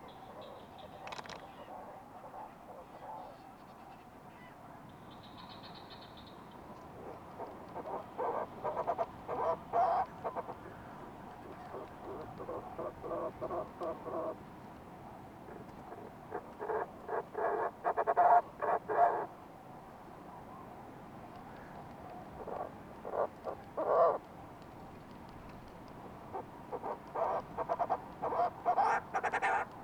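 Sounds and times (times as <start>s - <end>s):
Fulmar prion calls: 7.0s - 14.4s, 15.5s - 19.3s, 22.4s - 24.2s, 26.3s - 29.7s.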